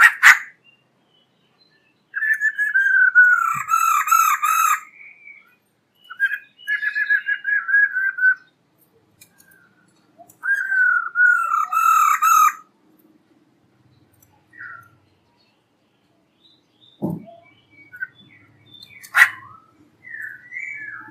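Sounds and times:
black-throated laughingthrush song of whistles and a harsh burst: 1.7s - 8.6s, 9.4s - 12.6s, 16.9s - 21.0s.

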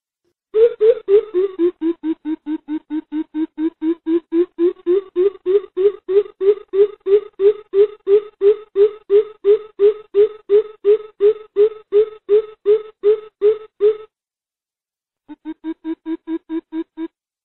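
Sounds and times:
greater coucal booming hoots: 0.6s - 14.1s.

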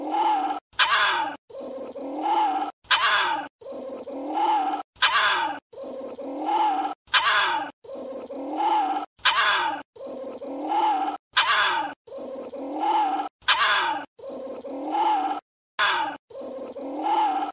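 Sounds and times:
small Indian civet moaning: 0.0s - 17.5s.

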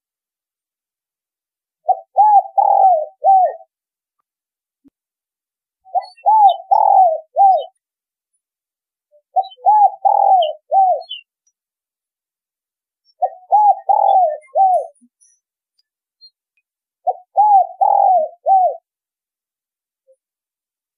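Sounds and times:
spotted dove cooing: 1.8s - 3.7s, 5.9s - 7.8s, 9.3s - 11.3s, 13.2s - 15.0s, 17.0s - 18.9s.

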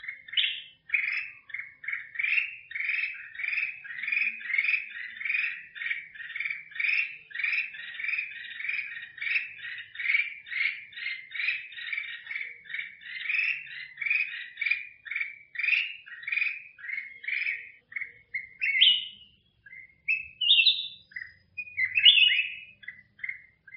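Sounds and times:
black-crested bulbul singing: 0.0s - 23.7s.

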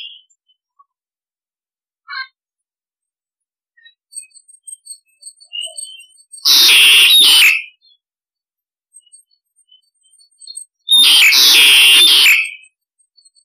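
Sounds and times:
starling harsh rasping calls: 5.5s - 7.7s, 10.9s - 12.6s.

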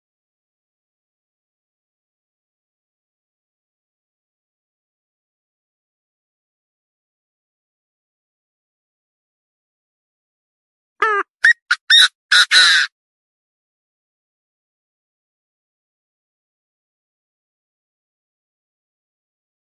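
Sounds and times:
partridge calling: 11.0s - 12.9s.

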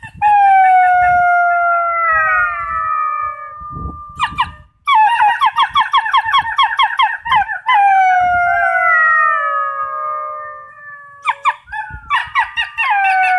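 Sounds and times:
wolves yelping and howling in chorus: 0.0s - 13.3s.

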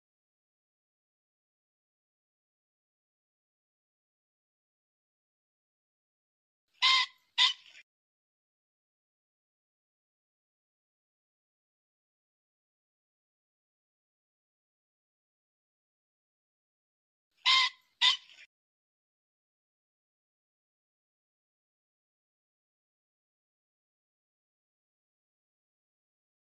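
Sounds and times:
pheasant squawking: 6.8s - 7.8s, 17.4s - 18.5s.

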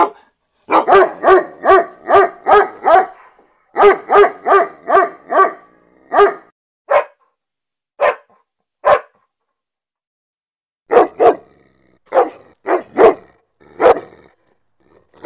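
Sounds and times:
German Shepherd barking: 0.0s - 7.3s, 8.0s - 9.3s, 10.9s - 14.3s.

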